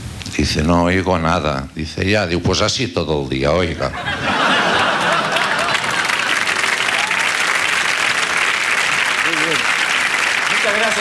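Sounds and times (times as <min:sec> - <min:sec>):
speech: 0:00.4 - 0:04.6
laughter: 0:03.8 - 0:07.2
applause: 0:04.8 - 0:11.0.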